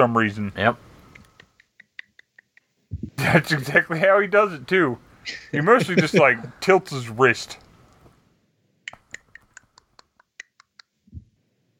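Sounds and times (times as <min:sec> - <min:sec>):
speech: 0:00.0 - 0:00.9, 0:03.2 - 0:07.6
mouth clicks imitating slow one-finger typing: 0:01.1 - 0:03.2, 0:08.9 - 0:11.0
low thud-like sound: 0:02.9 - 0:03.2
laughter: 0:03.2 - 0:03.6, 0:05.3 - 0:06.8.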